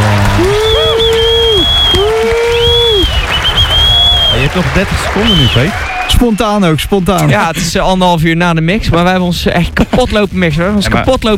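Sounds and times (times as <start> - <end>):
recorded applause played from tape: 0.0 - 7.2
speech: 4.5 - 11.3.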